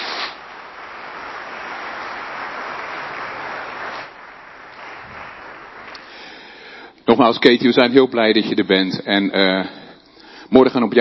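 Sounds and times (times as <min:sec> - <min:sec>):
crowd applauding: 0:00.0 - 0:06.8
speech: 0:07.2 - 0:09.8, 0:10.5 - 0:11.0.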